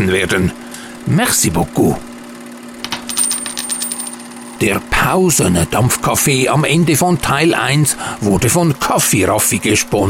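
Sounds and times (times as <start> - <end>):
speech: 0.1 - 2.1, 4.6 - 10.0
coin dropped into donation hat: 2.8 - 4.6.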